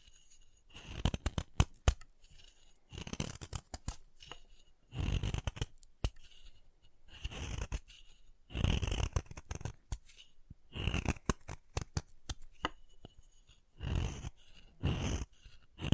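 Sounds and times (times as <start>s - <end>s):
chalk being carved and cut: 0.0s - 15.9s.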